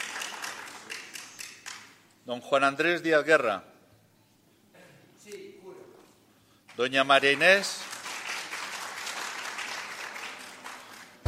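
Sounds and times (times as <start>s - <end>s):
audience applause: 0.0s - 1.9s, 7.2s - 11.2s
speech: 2.3s - 3.7s, 6.8s - 7.8s.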